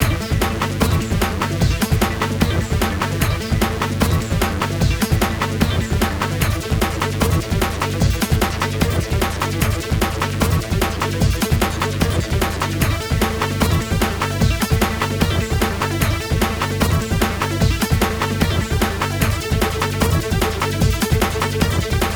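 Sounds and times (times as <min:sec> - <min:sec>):
bounce trance music: 0:00.0 - 0:22.1.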